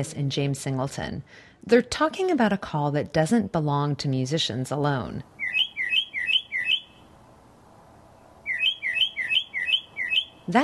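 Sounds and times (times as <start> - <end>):
speech: 0.0 - 5.3, 10.5 - 10.6
mockingbird chirping: 5.3 - 7.2, 8.0 - 10.6.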